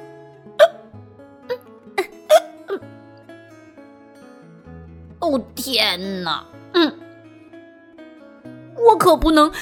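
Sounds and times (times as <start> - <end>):
soft steady music: 0.0 - 9.6
hiccups: 0.6 - 0.9, 1.5 - 2.9
speech: 5.3 - 7.0, 9.0 - 9.6.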